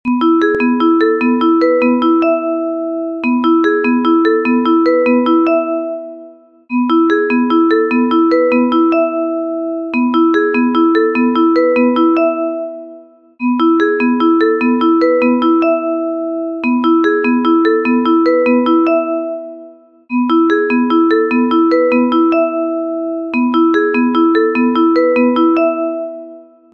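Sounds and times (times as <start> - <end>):
ringtone: 0.1 - 26.7.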